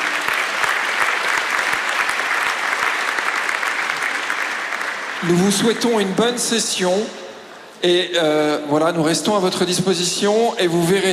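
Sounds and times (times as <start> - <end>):
audience applause: 0.0 - 6.1
speech: 5.2 - 7.2, 7.8 - 11.1.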